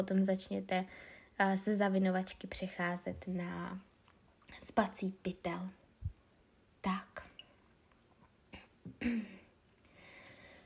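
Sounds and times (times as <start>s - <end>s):
speech: 0.0s - 3.9s, 4.5s - 5.8s, 6.8s - 7.1s, 9.0s - 9.4s
woman coughing: 8.6s - 9.5s.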